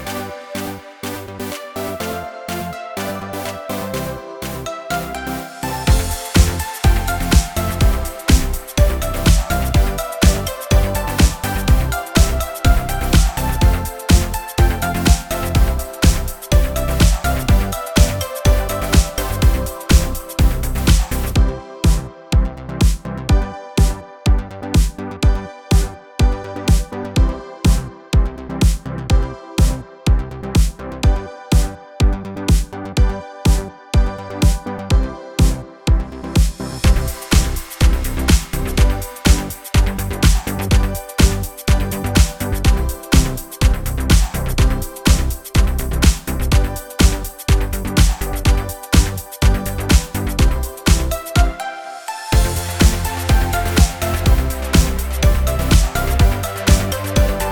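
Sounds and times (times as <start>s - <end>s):
music: 0.0s - 57.4s.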